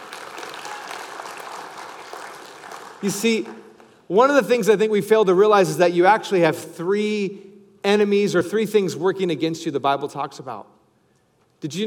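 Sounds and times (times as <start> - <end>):
congregation clapping during a church sermon: 0.0 - 4.5
speech: 3.0 - 10.8, 11.6 - 11.8.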